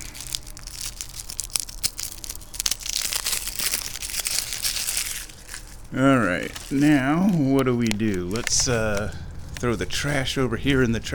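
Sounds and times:
plastic packaging being torn open: 0.0s - 11.1s
speech: 5.9s - 11.1s.

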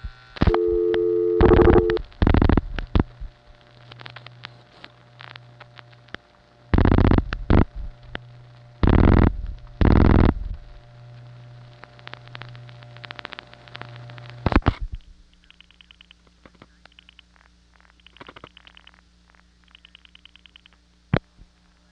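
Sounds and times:
low hum: 0.0s - 4.5s, 5.1s - 15.7s
telephone signalling tones dialing four digits into a PBX: 0.5s - 2.0s.

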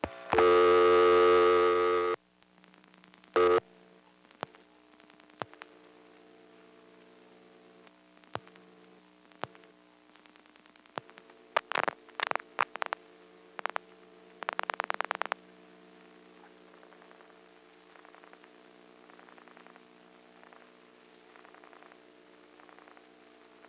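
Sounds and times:
steady telephone exchange tone: 0.0s - 2.2s, 3.3s - 3.8s, 11.0s - 23.6s
faint hum: 0.0s - 23.6s.

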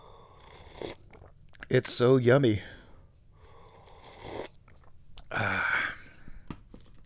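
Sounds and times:
slurping sips of tea: 0.0s - 1.4s, 3.4s - 5.0s
speech: 1.7s - 2.8s.

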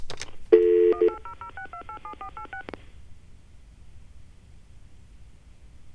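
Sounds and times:
touch-tone keypad beeps dialing 1-800-NATRIUM: 0.6s - 2.7s.

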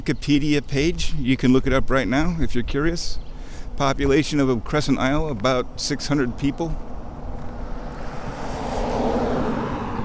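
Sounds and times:
speech: 0.0s - 3.2s, 3.8s - 6.9s
passing traffic: 2.9s - 10.0s.

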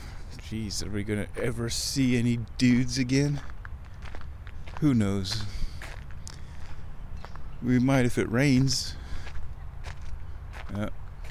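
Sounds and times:
speech: 0.5s - 3.6s, 4.8s - 5.6s, 7.6s - 9.0s, 10.7s - 11.0s
footsteps walking down a corridor: 3.3s - 7.5s, 8.5s - 11.2s.

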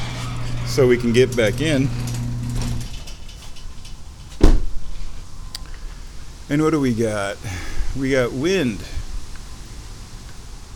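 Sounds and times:
garage door opening: 0.0s - 5.2s
speech: 0.7s - 2.0s, 6.5s - 9.0s.

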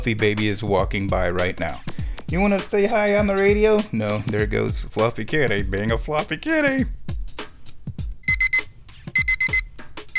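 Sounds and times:
speech: 0.0s - 7.0s
electronic reminder beeper going off: 8.2s - 8.6s.

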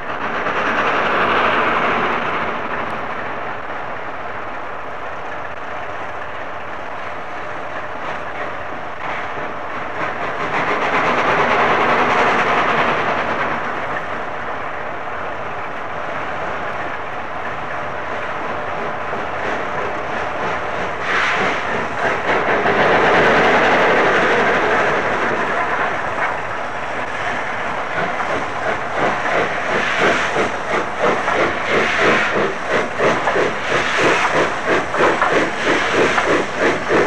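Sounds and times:
train labouring to start on greasy rails on a misty November morning: 0.0s - 37.0s.

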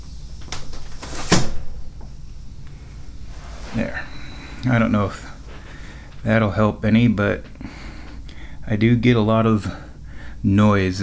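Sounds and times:
window being closed: 0.4s - 2.4s, 3.0s - 7.6s
speech: 3.8s - 4.0s, 4.6s - 5.3s, 6.2s - 7.5s, 8.7s - 9.8s, 10.4s - 11.0s.

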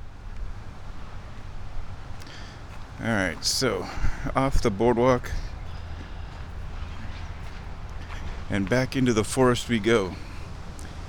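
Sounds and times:
wind gusts buffeting the microphone outdoors near a forest boardwalk: 0.3s - 11.0s
speech: 3.0s - 5.5s, 8.5s - 10.3s.

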